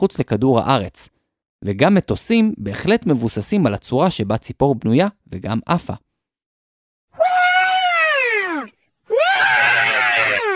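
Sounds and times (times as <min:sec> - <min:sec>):
speech: 0:00.0 - 0:06.1
voice imitating a dinosaur roar: 0:07.2 - 0:10.5.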